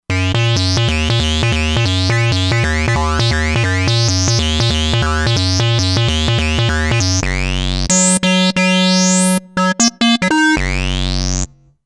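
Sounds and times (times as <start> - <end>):
trippy lead melody: 0.1 - 11.7.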